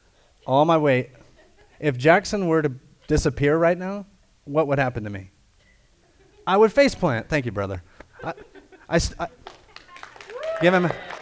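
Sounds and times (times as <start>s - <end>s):
speech: 0.5s - 1.2s, 1.8s - 5.3s, 6.4s - 9.6s, 10.6s - 11.1s
laughter: 8.2s - 11.1s
audience applause: 9.3s - 11.1s.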